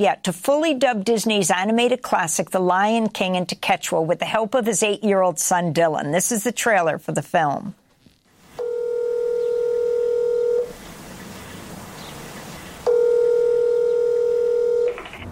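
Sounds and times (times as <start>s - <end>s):
speech: 0.0s - 7.8s
telephone dialing tones: 8.6s - 10.7s, 12.9s - 15.3s.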